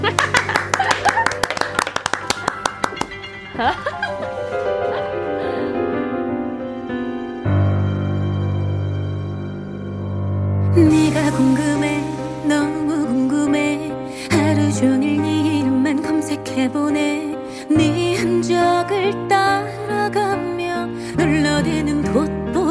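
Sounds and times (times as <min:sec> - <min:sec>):
rhythmic hand claps: 0:00.0 - 0:03.6
laughter: 0:00.0 - 0:05.8
music track with sustained tones: 0:00.0 - 0:22.6
speech: 0:03.6 - 0:03.9.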